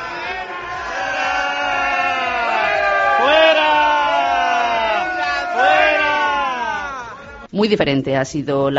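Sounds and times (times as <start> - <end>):
crowd booing and jeering: 0.0 - 7.5
speech: 7.6 - 8.7.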